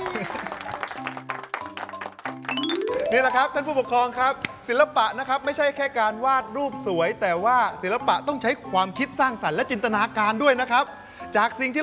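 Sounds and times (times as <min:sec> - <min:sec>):
audience applause: 0:00.0 - 0:03.1
speech: 0:03.1 - 0:11.8.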